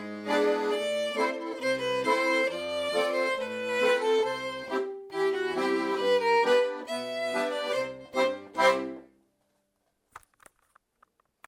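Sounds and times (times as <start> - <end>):
fiddle playing slow polka: 0.0 - 9.1.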